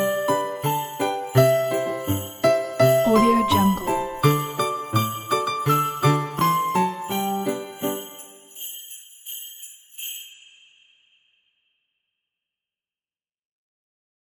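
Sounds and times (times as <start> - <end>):
Christmas song: 0.0 - 10.9.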